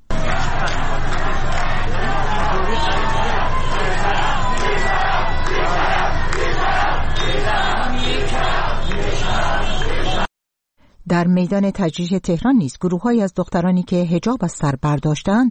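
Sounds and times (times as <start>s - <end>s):
large crowd of protesters chanting slogans: 0.0s - 10.3s
speech: 11.1s - 15.4s.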